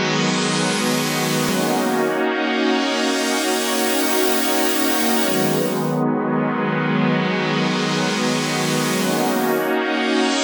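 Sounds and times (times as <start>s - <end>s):
club techno synth pad in D sharp: 0.1s - 6.0s, 7.2s - 10.4s.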